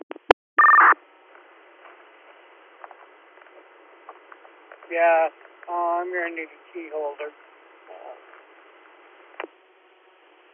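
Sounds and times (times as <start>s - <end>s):
steady two-pitch telephone tone: 0.6s - 1.0s
telephone keypad tones as a number is dialed: 0.6s - 1.0s
speech: 4.9s - 7.5s.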